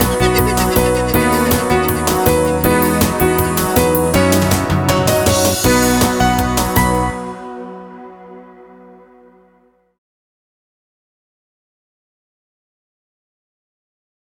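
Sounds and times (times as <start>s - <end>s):
karaoke backing track: 0.0s - 8.3s.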